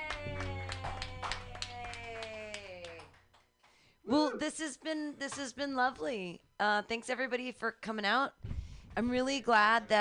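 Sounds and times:
group clapping: 0.0s - 3.8s
speech: 4.1s - 9.9s.

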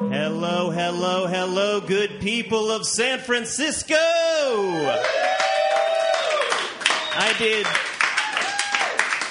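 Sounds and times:
speech: 0.2s - 5.5s, 7.2s - 7.9s
audience applause: 4.8s - 9.2s.

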